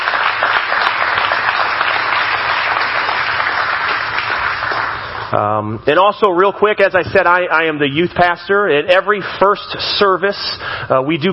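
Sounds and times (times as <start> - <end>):
audience applauding: 0.0 - 5.4
speech: 5.3 - 11.3.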